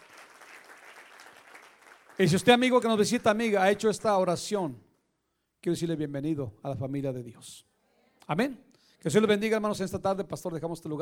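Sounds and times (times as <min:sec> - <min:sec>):
audience applauding: 0:00.0 - 0:02.9
speech: 0:02.2 - 0:04.9, 0:05.6 - 0:07.7, 0:08.3 - 0:11.0.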